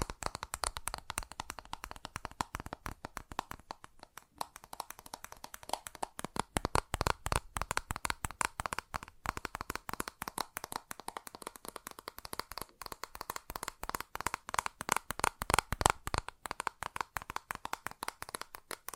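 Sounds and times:
fast tapping with papery card-like texture: 0.0s - 18.9s.

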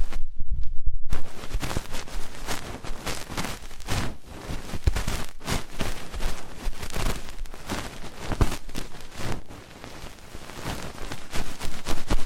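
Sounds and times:
low thumping: 0.0s - 1.6s
ASMR ear treatment crackling rustle: 1.1s - 12.2s.

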